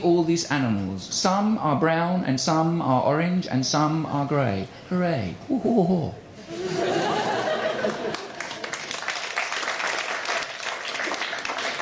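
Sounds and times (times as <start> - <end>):
speech: 0.0 - 6.8
laughter: 5.7 - 8.9
audience applause: 7.1 - 11.8.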